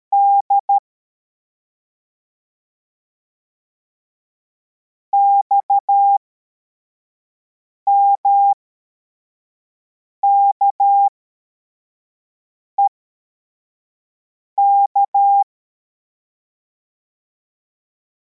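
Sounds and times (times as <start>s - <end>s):
CW morse code beeps: 0.1s - 0.8s, 5.2s - 6.2s, 7.9s - 8.6s, 10.2s - 11.1s, 14.6s - 15.5s.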